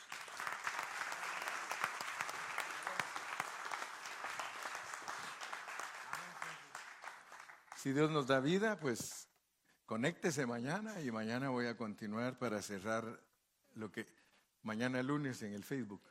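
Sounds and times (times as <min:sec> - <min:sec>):
audience clapping hands: 0:00.0 - 0:08.6
speech: 0:07.8 - 0:09.2, 0:09.9 - 0:16.0.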